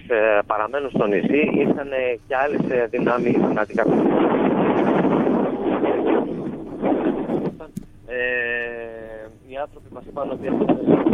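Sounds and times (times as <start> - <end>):
strong wind heard over a muffled tinny phone line: 0.0 - 11.1
speech: 0.1 - 4.3, 9.6 - 11.1
steady buzzing harmonic tone: 4.0 - 9.6.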